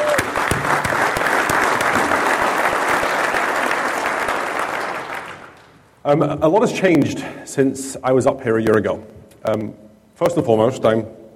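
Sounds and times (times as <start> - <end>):
audience applause: 0.0 - 5.7
speech: 6.1 - 11.2.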